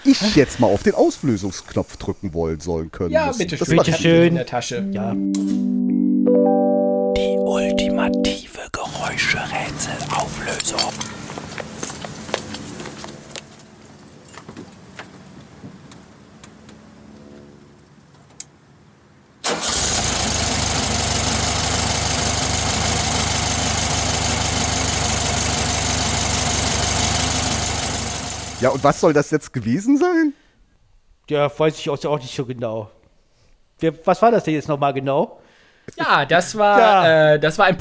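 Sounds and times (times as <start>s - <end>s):
speech: 0.0s - 11.2s, 28.6s - 30.4s, 31.3s - 33.0s, 33.8s - 37.7s
old VW Beetle engine idling and revving: 19.7s - 28.6s.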